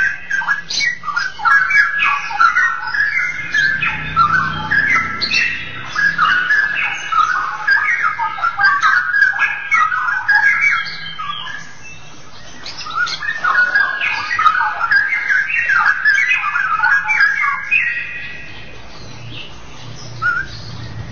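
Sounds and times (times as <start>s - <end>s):
Oriental magpie-robin song: 0.0s - 21.0s.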